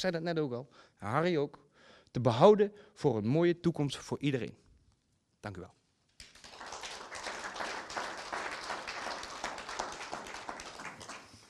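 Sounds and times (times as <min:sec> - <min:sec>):
speech: 0:00.0 - 0:04.6, 0:05.4 - 0:05.8
audience applause: 0:06.2 - 0:11.4.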